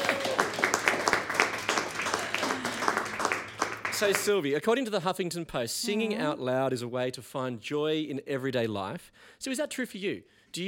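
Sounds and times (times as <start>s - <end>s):
applause from a small group: 0.0s - 4.6s
speech: 4.0s - 10.6s.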